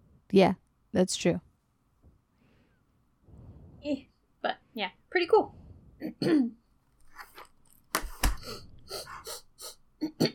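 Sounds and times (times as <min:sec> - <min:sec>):
speech: 0:00.3 - 0:01.5, 0:03.8 - 0:06.6
person clearing throat: 0:06.0 - 0:06.6, 0:10.0 - 0:10.3.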